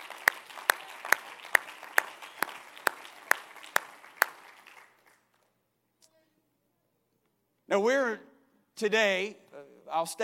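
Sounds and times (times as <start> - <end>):
audience clapping in unison: 0.0 - 5.5
speech: 7.7 - 10.2.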